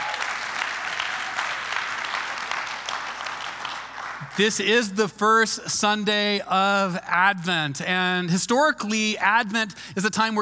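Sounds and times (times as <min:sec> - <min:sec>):
hands clapping: 0:00.0 - 0:04.9
speech: 0:04.3 - 0:10.4.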